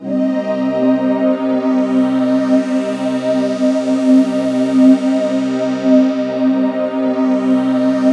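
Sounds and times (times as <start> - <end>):
composite ethereal ambient atmosphere: 0.0 - 8.1.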